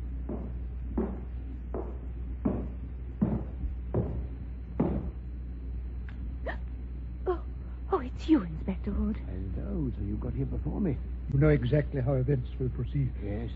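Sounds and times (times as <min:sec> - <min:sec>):
footsteps: 0:00.0 - 0:05.3
low constant hum: 0:00.0 - 0:13.5
speech: 0:08.2 - 0:13.5.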